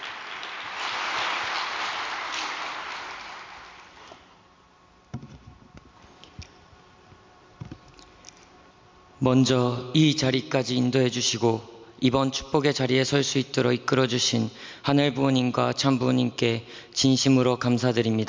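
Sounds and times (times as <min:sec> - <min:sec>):
audience applause welcoming a speaker: 0:00.0 - 0:04.2
speech: 0:09.2 - 0:18.2.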